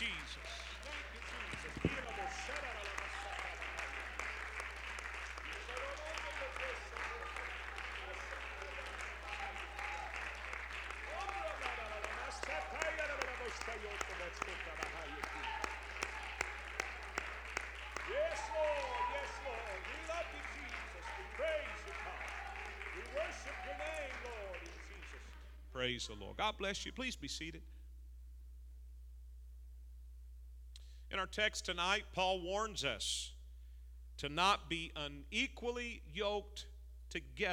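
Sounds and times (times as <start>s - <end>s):
audience applauding in praise: 0.0s - 25.4s
speech: 25.9s - 27.8s, 31.3s - 33.3s, 34.2s - 37.5s.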